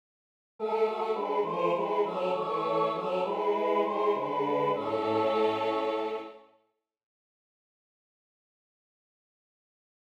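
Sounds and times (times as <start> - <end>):
choral music tutti: 0.6 - 6.6.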